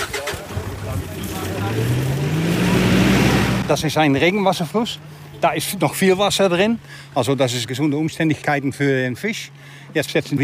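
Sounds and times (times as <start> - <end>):
truck engine accelerating as it pulls away: 0.0 - 7.5
speech: 3.7 - 10.4.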